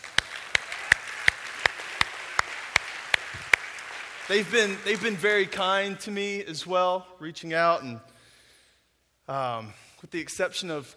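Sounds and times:
audience clapping in rhythm: 0.0s - 6.2s
speech: 4.3s - 8.1s, 9.3s - 10.9s.

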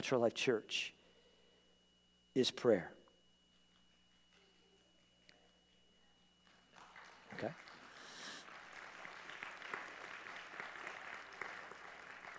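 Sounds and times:
speech: 0.0s - 1.0s, 2.4s - 3.0s, 7.3s - 7.6s
audience applauding: 6.4s - 12.3s.

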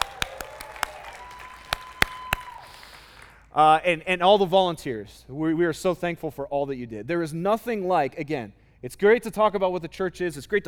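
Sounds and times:
church audience applauding and cheering: 0.0s - 3.5s
speech: 3.6s - 10.6s.

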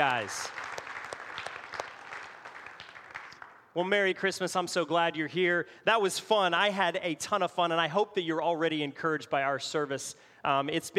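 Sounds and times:
speech: 0.0s - 0.7s, 3.7s - 10.9s
audience applause: 0.0s - 3.6s.

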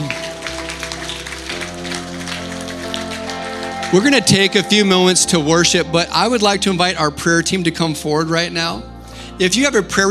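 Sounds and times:
audience clapping hands: 0.0s - 5.2s
speech: 3.9s - 10.0s.

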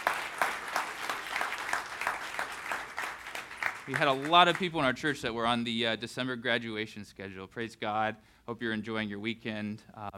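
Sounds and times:
audience clapping: 0.0s - 5.2s
speech: 3.9s - 10.1s.

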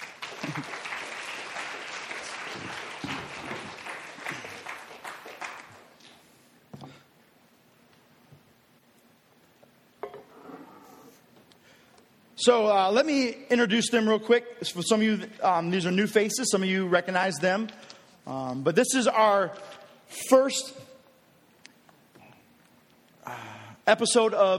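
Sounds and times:
church panel discussion audience applause: 0.0s - 6.0s
speech: 12.4s - 20.9s, 23.9s - 24.5s.

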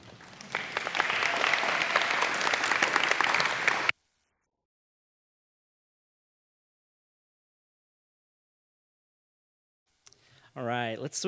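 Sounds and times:
audience applause: 0.0s - 3.9s
speech: 10.6s - 11.2s.

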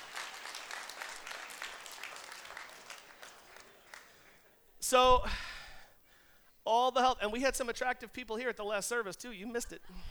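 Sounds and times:
audience applause: 0.0s - 4.4s
speech: 4.9s - 5.5s, 6.6s - 10.1s.

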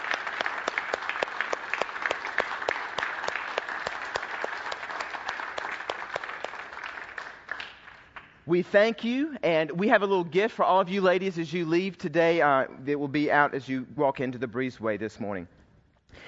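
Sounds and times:
audience applause: 0.0s - 8.4s
speech: 8.5s - 15.6s.

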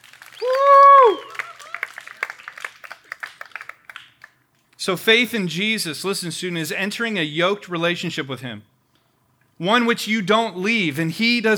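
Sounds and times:
audience applause: 0.0s - 4.4s
speech: 4.8s - 8.7s, 9.6s - 11.5s.

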